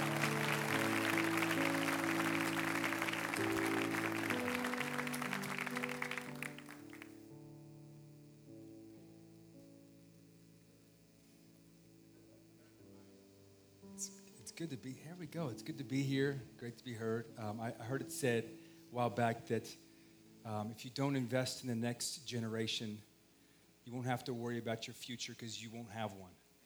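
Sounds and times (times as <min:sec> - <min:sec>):
audience applauding a pastor welcomed onto the stage: 0:00.0 - 0:07.2
soft sustained musical chords: 0:00.0 - 0:20.6
speech: 0:14.6 - 0:19.8, 0:20.4 - 0:23.1, 0:23.9 - 0:26.4.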